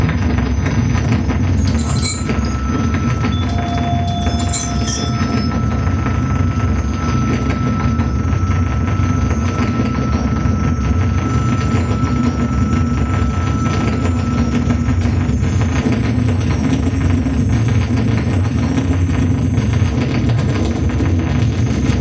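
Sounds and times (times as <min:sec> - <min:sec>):
dark noise: 0:00.0 - 0:22.0.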